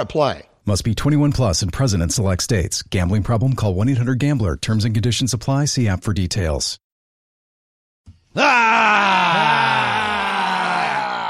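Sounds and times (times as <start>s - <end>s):
speech: 0.0s - 6.8s
man growling: 8.4s - 11.2s.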